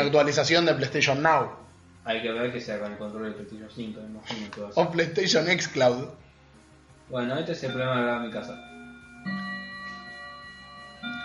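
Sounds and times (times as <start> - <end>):
speech: 0.0 - 6.2, 7.1 - 9.4
clock chiming the hour: 7.6 - 11.2.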